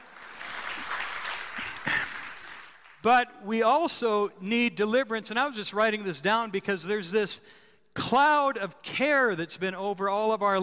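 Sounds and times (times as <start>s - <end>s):
crowd clapping: 0.0s - 3.1s
speech: 3.0s - 10.6s.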